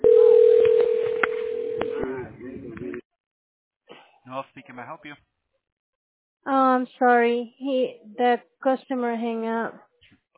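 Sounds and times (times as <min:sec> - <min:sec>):
steady telephone tone while dialing a tax specialist: 0:00.0 - 0:02.0
speech: 0:04.5 - 0:05.4, 0:06.4 - 0:09.9.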